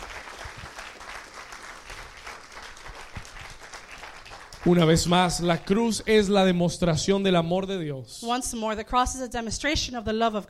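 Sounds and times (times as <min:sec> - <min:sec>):
audience applause: 0:00.0 - 0:05.8
speech: 0:04.6 - 0:10.4.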